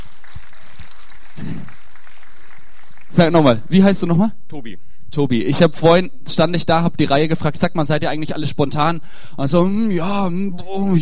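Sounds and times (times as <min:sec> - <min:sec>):
audience applause: 0:00.0 - 0:03.6
speech: 0:03.2 - 0:10.9.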